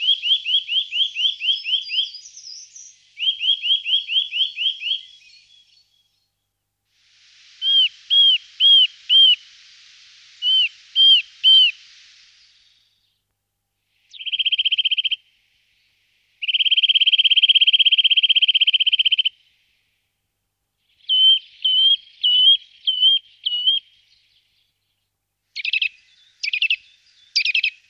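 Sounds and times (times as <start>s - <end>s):
Eurasian nuthatch calling: 0.0s - 6.1s, 7.6s - 9.6s, 10.4s - 13.0s, 14.0s - 15.3s, 16.4s - 19.5s, 20.9s - 24.2s, 25.6s - 27.8s.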